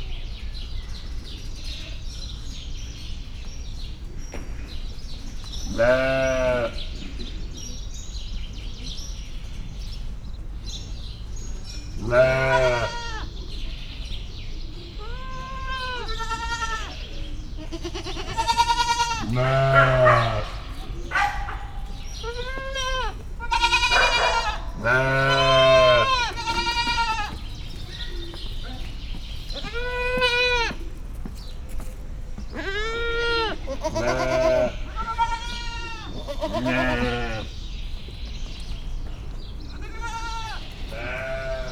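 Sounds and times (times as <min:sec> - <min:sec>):
goat bleating: 0:05.7 - 0:06.8, 0:12.0 - 0:13.3, 0:15.0 - 0:17.0, 0:17.6 - 0:20.6, 0:22.2 - 0:28.8, 0:29.5 - 0:30.8, 0:32.5 - 0:37.5, 0:39.7 - 0:41.6
speech: 0:05.8 - 0:06.3.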